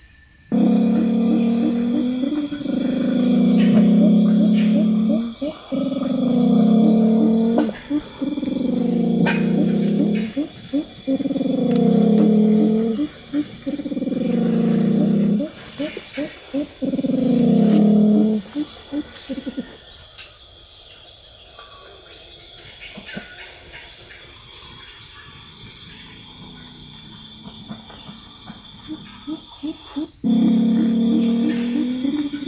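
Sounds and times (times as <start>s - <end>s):
insects hissing: 0.0s - 32.4s
black hen-like Amazon forest bird calling: 0.5s - 19.8s, 28.8s - 32.4s.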